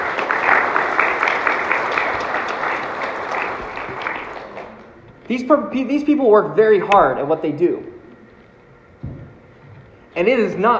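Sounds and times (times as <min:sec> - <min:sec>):
audience applauding: 0:00.0 - 0:05.0
speech: 0:05.3 - 0:07.9, 0:10.2 - 0:10.7.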